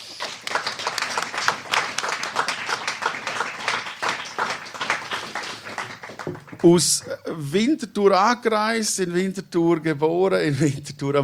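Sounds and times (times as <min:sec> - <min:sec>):
warm audience applause: 0:00.0 - 0:07.0
speech: 0:06.6 - 0:11.2.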